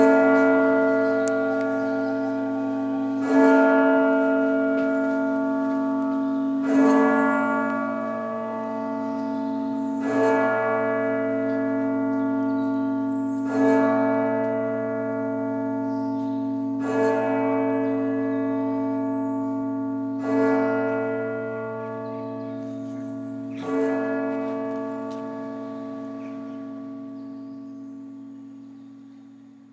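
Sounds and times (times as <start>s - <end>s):
bells: 0.0s - 29.7s.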